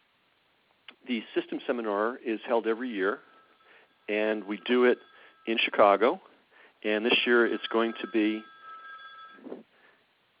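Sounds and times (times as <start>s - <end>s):
speech: 1.1s - 3.3s, 4.1s - 8.5s
telephone ringing: 2.5s - 6.3s, 6.9s - 9.6s.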